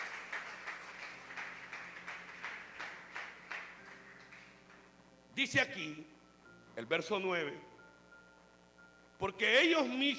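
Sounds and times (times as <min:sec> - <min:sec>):
audience clapping: 0:00.0 - 0:04.9
speech: 0:05.4 - 0:06.2, 0:06.8 - 0:07.7, 0:09.2 - 0:10.1.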